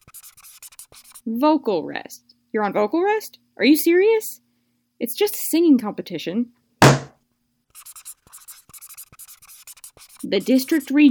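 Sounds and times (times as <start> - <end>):
marker strokes squeaking across a whiteboard: 0.0 - 1.2, 7.7 - 11.0
speech: 1.2 - 4.4, 5.0 - 6.6, 10.3 - 11.0.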